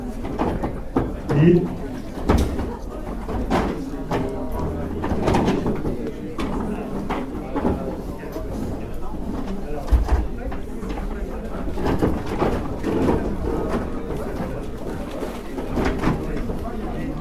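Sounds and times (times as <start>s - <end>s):
chairs being moved and stacked: 0.1s - 17.0s
speech: 1.4s - 1.8s.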